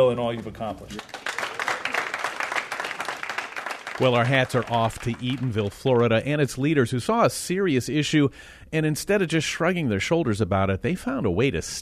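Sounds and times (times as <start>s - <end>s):
speech: 0.0s - 1.2s, 4.0s - 11.8s
audience applause: 0.0s - 6.0s.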